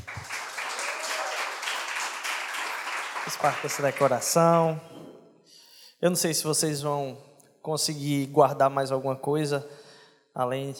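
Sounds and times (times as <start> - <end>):
audience clapping: 0.0 - 4.9
speech: 3.3 - 4.9, 6.0 - 9.8, 10.4 - 10.7.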